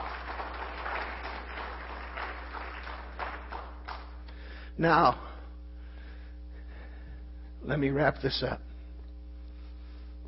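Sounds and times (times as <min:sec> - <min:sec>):
audience hand clapping: 0:00.0 - 0:04.5
low constant hum: 0:00.0 - 0:10.2
speech: 0:04.8 - 0:05.3, 0:07.6 - 0:08.7.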